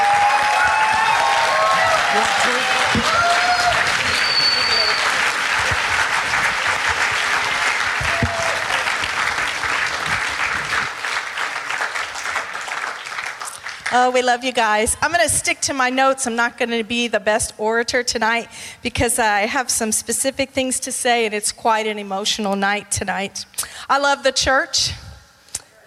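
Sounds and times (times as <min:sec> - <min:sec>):
audience standing and clapping hands: 0:00.0 - 0:14.2
speech: 0:14.0 - 0:25.1.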